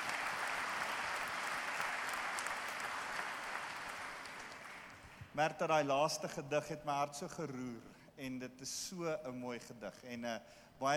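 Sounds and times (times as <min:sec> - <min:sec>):
audience applause: 0:00.0 - 0:05.2
speech: 0:05.4 - 0:10.9.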